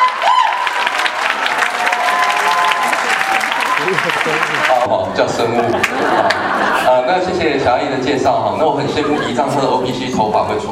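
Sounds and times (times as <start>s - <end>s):
audience clapping welcoming a speaker to a talk on purchase annuities: 0.0s - 4.9s, 5.7s - 6.5s
laughter: 3.4s - 7.4s, 8.5s - 10.4s
speech: 3.9s - 10.6s.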